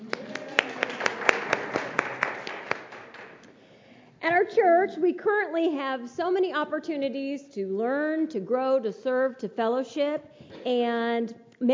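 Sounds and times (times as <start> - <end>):
congregation clapping to welcome a guest preacher in church: 0.0 - 3.6
speech: 4.5 - 11.7.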